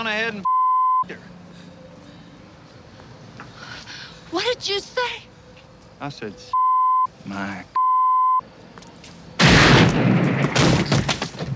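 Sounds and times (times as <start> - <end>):
speech: 0.0 - 1.4, 4.3 - 5.3, 6.0 - 6.6, 7.2 - 7.8
gunshot in a film scene: 9.4 - 11.4.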